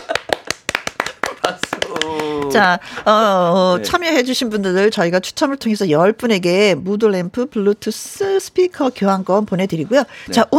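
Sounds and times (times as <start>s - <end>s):
hand clapping: 0.0s - 2.7s
speech: 2.5s - 10.5s.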